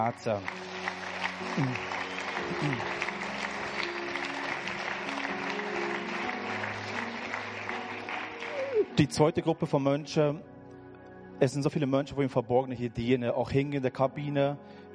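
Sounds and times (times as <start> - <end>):
speech: 0.0 - 0.6, 1.4 - 3.2, 9.0 - 10.5, 11.4 - 14.9
audience applause: 0.0 - 9.0.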